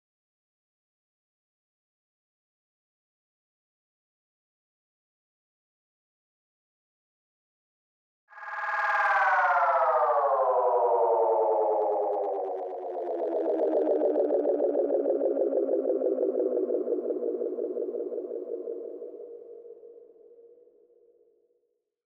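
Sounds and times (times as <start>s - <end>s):
Space Echo slowdown: 8.4s - 20.6s.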